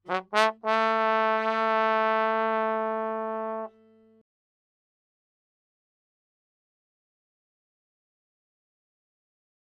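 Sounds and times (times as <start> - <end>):
trombone: 0.0 - 4.1.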